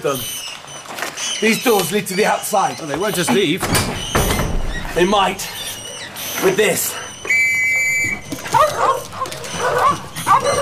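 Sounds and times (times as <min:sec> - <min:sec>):
speech: 0:00.0 - 0:00.4, 0:01.4 - 0:04.0, 0:05.0 - 0:05.6, 0:06.4 - 0:07.0
high whistle-like tone: 0:07.1 - 0:08.5
terriers barking and yipping: 0:07.1 - 0:10.6.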